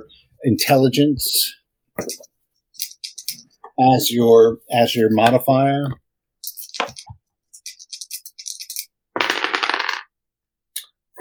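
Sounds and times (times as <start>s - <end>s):
speech: 0.0s - 2.3s, 3.8s - 6.0s
dice clattering across a hard surface: 2.8s - 3.4s, 6.4s - 10.1s.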